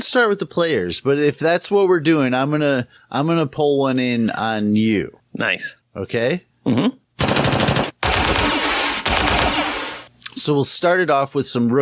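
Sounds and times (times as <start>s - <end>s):
speech: 0.0s - 7.3s, 10.4s - 11.8s
machine gun fire sound effect: 7.2s - 10.1s.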